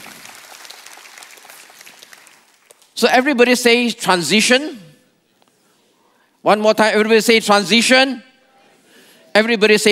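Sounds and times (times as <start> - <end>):
audience applause: 0.0 - 2.9
speech: 3.0 - 4.9, 6.4 - 8.3, 9.3 - 9.9.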